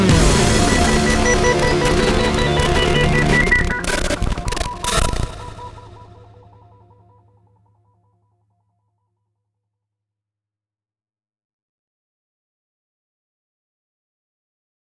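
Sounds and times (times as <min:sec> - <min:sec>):
game over sound: 0:00.1 - 0:06.3.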